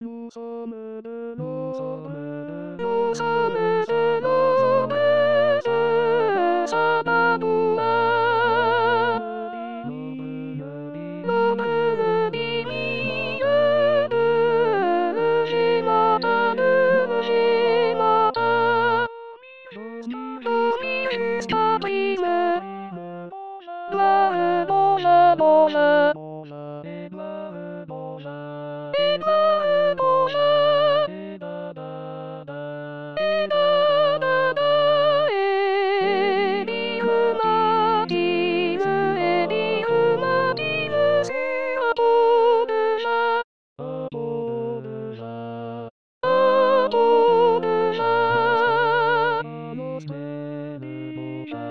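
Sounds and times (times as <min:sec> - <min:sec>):
soprano singing: 0:00.0 - 0:26.2, 0:26.8 - 0:31.4, 0:33.2 - 0:44.6, 0:46.2 - 0:51.6.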